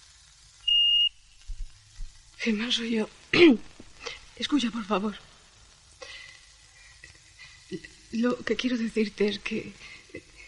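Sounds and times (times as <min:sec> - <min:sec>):
answering machine beep tone: 0:00.7 - 0:01.2
speech: 0:02.4 - 0:03.7, 0:04.4 - 0:05.3, 0:07.7 - 0:10.3.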